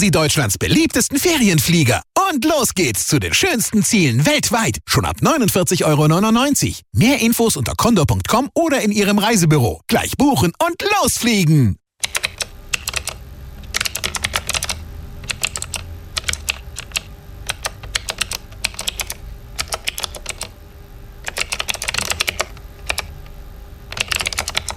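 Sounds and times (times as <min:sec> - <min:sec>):
speech: 0:00.0 - 0:12.4
computer keyboard keys being pressed: 0:12.0 - 0:20.5, 0:21.2 - 0:23.1, 0:23.9 - 0:24.7.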